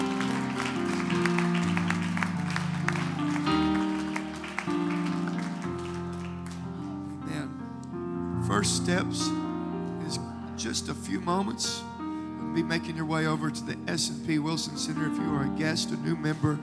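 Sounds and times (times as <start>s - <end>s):
audience clapping: 0.0s - 7.0s
organ or keyboard chords: 0.0s - 16.6s
speech: 8.6s - 9.4s, 10.6s - 11.9s, 12.6s - 16.6s.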